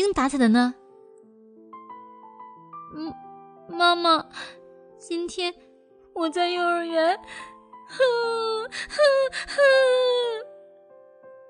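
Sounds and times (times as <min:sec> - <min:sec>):
speech: 0:00.0 - 0:00.8, 0:02.9 - 0:10.5
little girl crying: 0:07.9 - 0:10.5.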